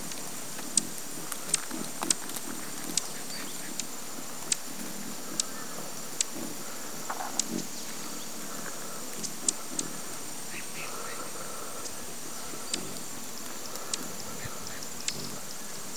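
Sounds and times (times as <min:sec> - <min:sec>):
horned sungem giving sharp high ticking calls: 0:00.7 - 0:15.9.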